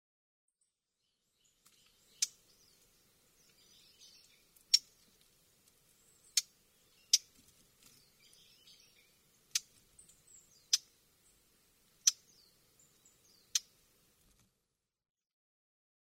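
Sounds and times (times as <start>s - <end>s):
lesser whitethroat tack calls: 1.7s - 5.2s, 6.0s - 11.4s, 12.0s - 13.8s.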